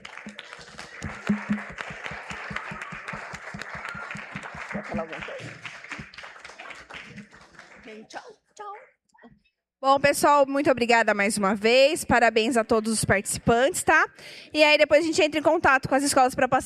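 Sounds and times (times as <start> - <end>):
audience applause: 0.0 - 8.3
speech: 5.0 - 5.8, 7.9 - 8.8, 9.8 - 16.6.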